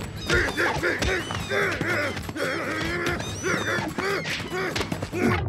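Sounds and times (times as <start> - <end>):
bird squawking and honking during a scuffle: 0.0 - 5.0
wings flapping: 0.0 - 5.3.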